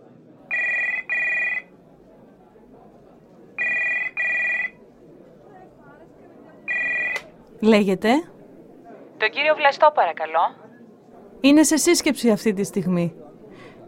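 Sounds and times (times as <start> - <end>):
telephone ringing in double bursts: 0.5 - 1.7, 3.6 - 4.8, 6.7 - 7.3
speech: 7.6 - 8.3, 9.2 - 10.6, 11.4 - 13.2.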